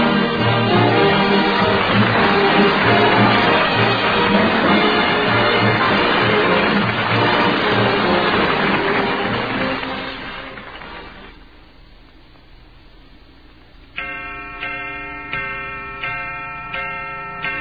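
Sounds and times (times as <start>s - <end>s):
clock chime: 0.0s - 9.4s, 14.0s - 17.5s.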